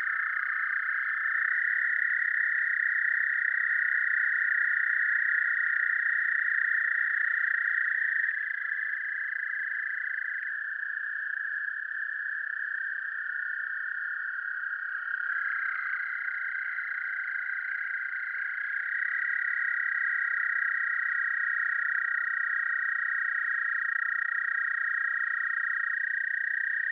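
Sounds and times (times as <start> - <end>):
American toad calling: 0.0 - 26.9.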